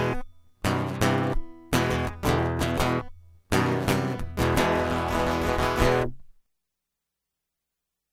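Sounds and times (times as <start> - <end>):
guitar loop: 0.0 - 6.3.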